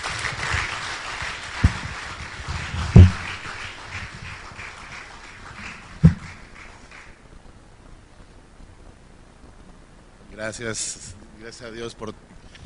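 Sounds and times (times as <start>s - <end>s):
audience applause for a pastor: 0.0s - 7.2s
speech: 10.4s - 12.3s.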